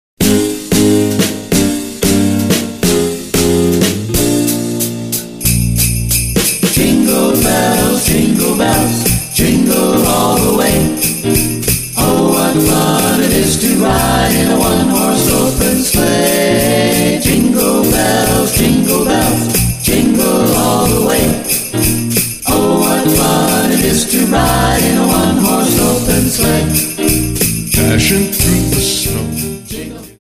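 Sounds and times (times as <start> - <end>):
jingle: 0.2 - 30.2.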